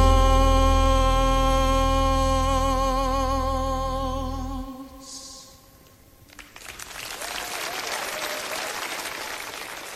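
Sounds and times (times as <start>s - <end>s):
piece of music: 0.0s - 4.8s
concert audience applause during a piece of music: 6.3s - 9.9s.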